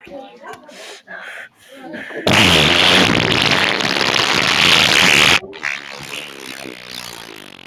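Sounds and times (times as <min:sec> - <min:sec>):
fart: 0:02.3 - 0:07.6.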